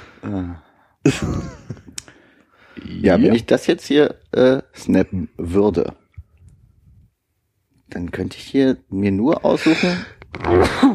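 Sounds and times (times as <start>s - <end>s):
speech: 0.2s - 1.8s, 2.9s - 6.0s, 7.9s - 10.9s
sneeze: 10.4s - 10.9s.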